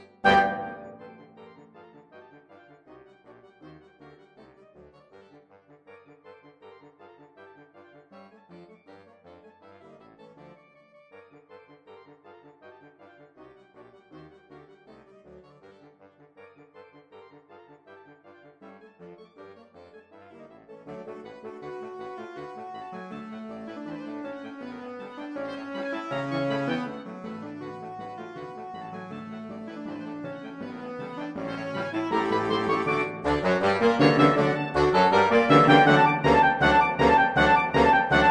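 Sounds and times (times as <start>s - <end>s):
saxophone: 0.0s - 1.8s, 21.6s - 38.3s.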